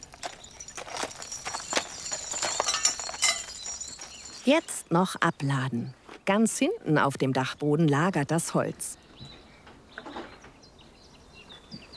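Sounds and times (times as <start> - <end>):
horses walking, hooves clip-clopping: 0.0 - 4.7
speech: 4.5 - 9.0.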